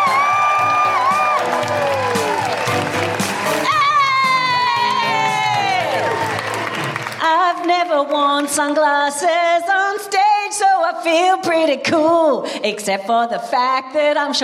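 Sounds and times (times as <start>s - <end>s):
audience whooping woo-hoo calls at a live comedy show: 0.0s - 7.2s
audience applauding at a live comedy show: 0.0s - 8.7s
speech: 8.0s - 14.4s.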